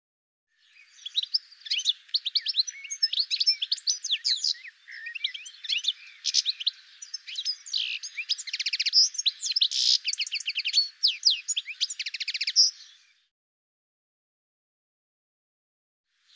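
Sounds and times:
bird chirps and trills: 0.6s - 13.3s.

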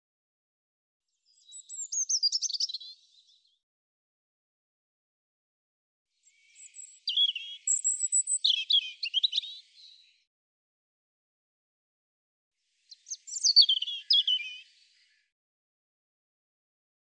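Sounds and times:
European robin singing warbled phrases: 1.3s - 3.4s, 6.2s - 10.2s, 12.9s - 15.2s.

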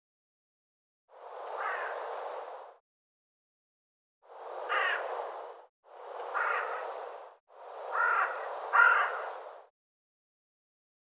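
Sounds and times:
bird cawing: 1.6s - 2.1s, 4.7s - 5.2s, 6.2s - 7.1s, 7.9s - 9.4s.

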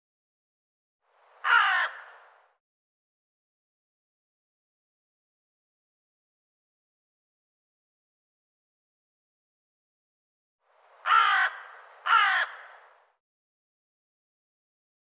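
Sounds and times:
harsh raspy bird caw: 1.4s - 2.3s, 11.0s - 12.9s.

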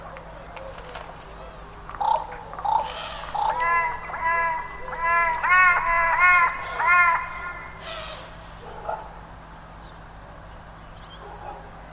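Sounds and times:
bird arching calls: 1.9s - 8.7s.

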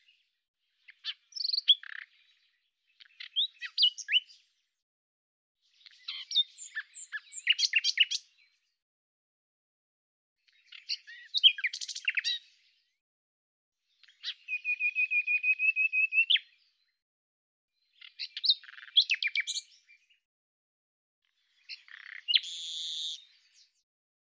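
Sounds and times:
common nightingale song: 0.0s - 4.5s, 5.7s - 8.8s, 10.5s - 12.8s, 13.9s - 17.0s, 17.8s - 20.2s, 21.3s - 23.8s.

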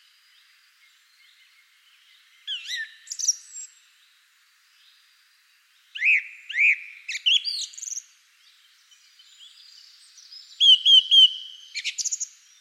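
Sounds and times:
bird high piping calls with sharp chips and brief trills: 2.4s - 3.8s, 5.9s - 8.1s, 9.2s - 12.5s.

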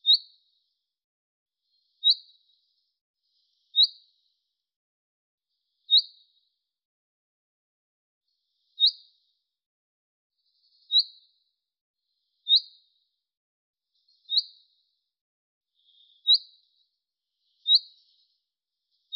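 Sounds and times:
bird giving short high chirps: 0.0s - 0.5s, 1.6s - 4.1s, 5.8s - 6.4s, 8.6s - 9.1s, 10.4s - 11.4s, 12.3s - 13.0s, 13.9s - 14.8s, 15.8s - 19.1s.

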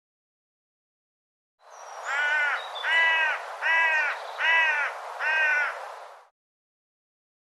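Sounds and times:
bird cawing: 2.0s - 5.8s.

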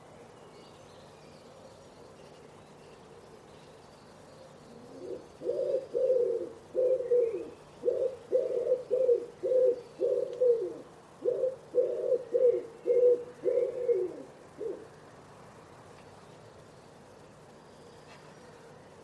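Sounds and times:
Common Wood Pigeon cooing: 4.6s - 14.9s.

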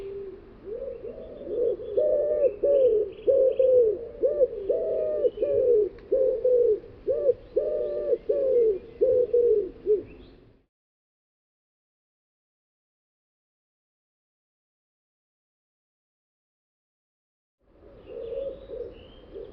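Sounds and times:
bird giving low mellow cooing notes: 0.0s - 10.4s, 17.8s - 19.5s.

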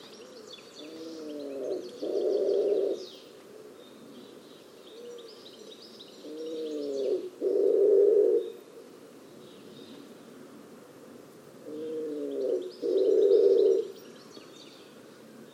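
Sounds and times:
bird cooing in a low register: 0.0s - 8.9s, 11.6s - 14.0s.

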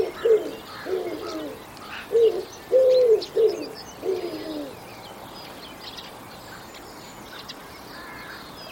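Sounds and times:
bird cooing in low rounded notes: 0.0s - 4.8s.

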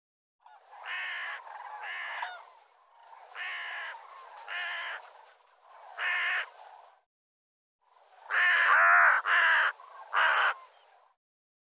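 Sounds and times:
bird calling with hoarse caws: 0.4s - 5.1s, 8.3s - 10.8s.

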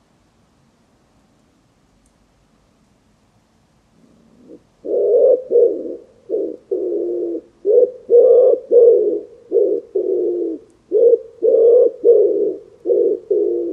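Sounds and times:
bird giving low hoarse cooing notes: 4.0s - 13.7s.

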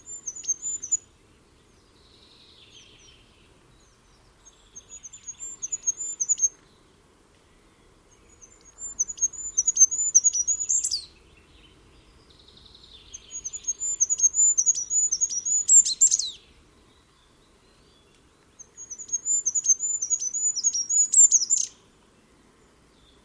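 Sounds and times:
bird chirping: 0.0s - 23.2s.

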